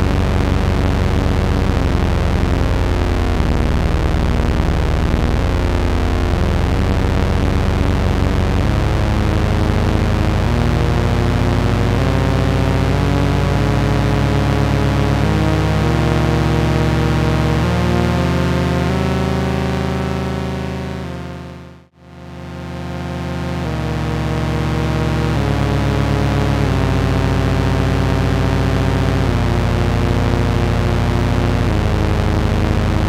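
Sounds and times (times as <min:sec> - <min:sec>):
chordizer synthesized chords: 0:00.0 - 0:33.0.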